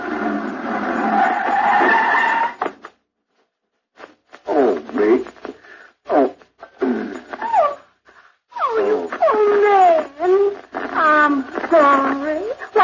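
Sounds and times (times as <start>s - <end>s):
racing sports car tires squealing: 0.0s - 2.8s
wavering whimpering vocal sounds: 6.6s - 12.7s.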